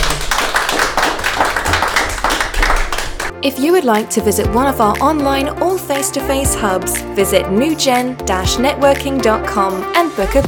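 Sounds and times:
audience applause: 0.0s - 3.3s
speech: 3.4s - 10.4s.

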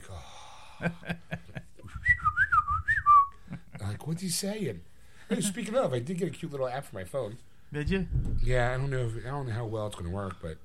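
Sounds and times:
speech: 0.8s - 1.2s, 4.1s - 10.6s
R2-D2 droid beeps and whistles: 1.9s - 3.4s.

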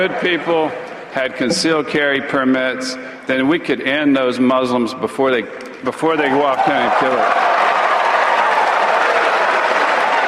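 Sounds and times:
speech: 0.0s - 7.5s
raucous crowd applause: 6.1s - 10.2s.

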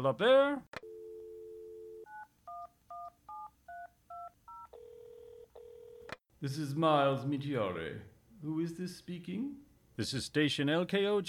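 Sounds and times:
speech: 0.0s - 0.8s, 6.4s - 11.2s
telephone dialing tones: 0.8s - 6.2s.

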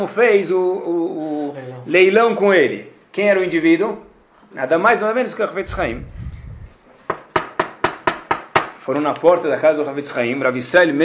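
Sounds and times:
speech: 0.0s - 6.2s, 8.8s - 11.0s
knocking on a wooden door: 7.1s - 8.8s.

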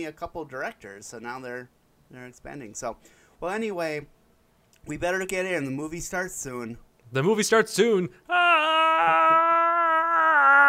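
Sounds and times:
speech: 0.0s - 4.2s, 4.8s - 9.4s
voice imitating a porg's scream: 8.3s - 10.6s.

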